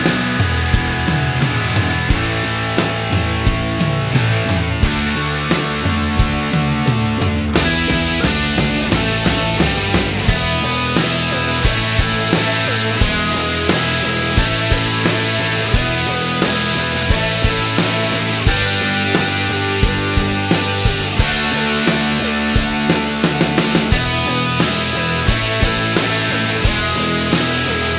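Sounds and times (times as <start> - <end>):
rock guitar backing track: 0.0 - 27.9.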